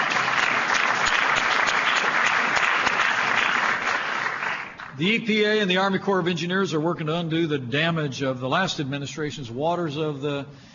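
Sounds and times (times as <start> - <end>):
audience applause: 0.0 - 5.0
speech: 5.0 - 10.7.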